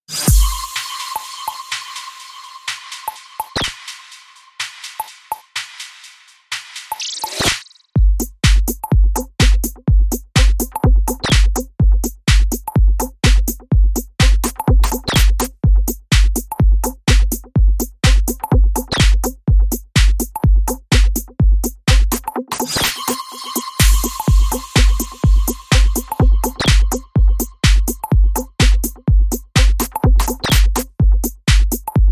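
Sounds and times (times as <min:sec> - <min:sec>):
instrumental beat: 0:00.1 - 0:32.1.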